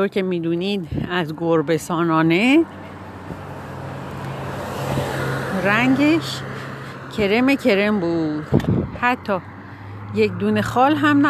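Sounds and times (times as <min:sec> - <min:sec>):
speech: 0:00.0 - 0:03.4, 0:05.6 - 0:06.5, 0:07.2 - 0:11.2
car driving past: 0:02.6 - 0:11.2.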